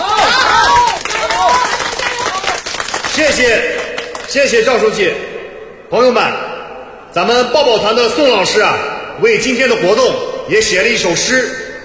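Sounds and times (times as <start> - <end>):
audience applause: 0.0 - 4.3
speech: 3.3 - 5.3, 5.9 - 6.5, 7.1 - 11.6.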